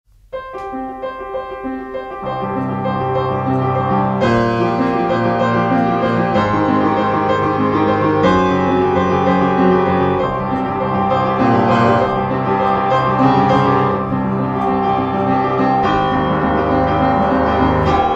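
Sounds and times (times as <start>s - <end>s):
prelude in C major: 0.2s - 18.1s.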